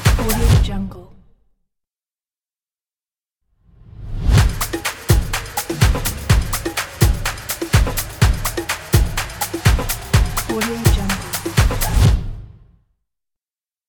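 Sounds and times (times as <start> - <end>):
stomp percussion: 0.0 - 0.7, 4.3 - 12.4.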